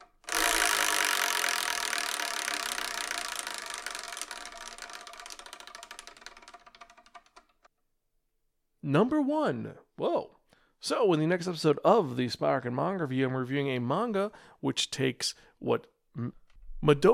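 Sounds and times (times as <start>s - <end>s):
spinning wheel ratcheting clicks: 0.0s - 7.7s
speech: 8.9s - 17.1s.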